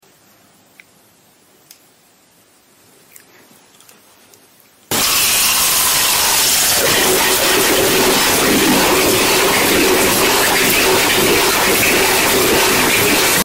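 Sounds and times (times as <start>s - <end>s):
ASMR sounds: 4.9s - 13.4s.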